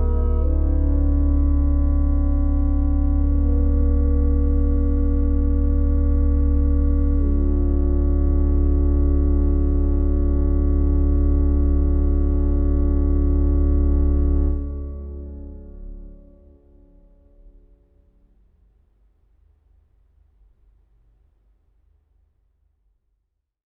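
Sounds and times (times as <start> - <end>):
organist playing a melody: 0.0 - 16.5.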